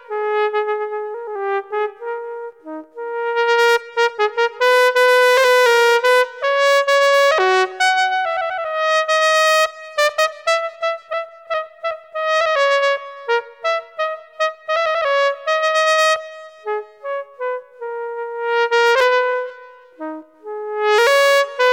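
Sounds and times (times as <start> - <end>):
piccolo trumpet playing: 0.1 - 21.7.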